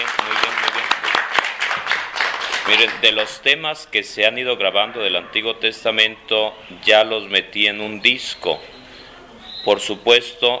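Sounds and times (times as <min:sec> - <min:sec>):
crowd applause: 0:00.0 - 0:03.4
speech: 0:02.7 - 0:08.7, 0:09.6 - 0:10.5.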